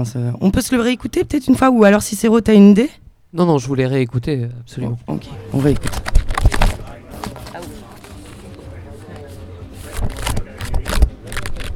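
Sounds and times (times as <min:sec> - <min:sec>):
speech: 0:00.0 - 0:06.2
paper package tearing crackles: 0:05.6 - 0:08.6, 0:09.8 - 0:11.7
paper package of finished posters crinkling and rustling: 0:05.6 - 0:11.7.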